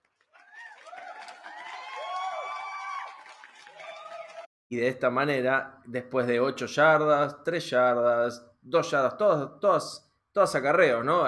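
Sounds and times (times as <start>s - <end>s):
applause: 0.0s - 4.5s
speech: 4.7s - 11.2s.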